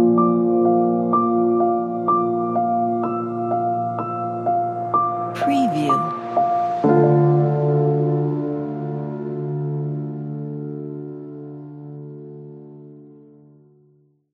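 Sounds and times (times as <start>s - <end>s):
emotional sad piano music: 0.0s - 13.8s.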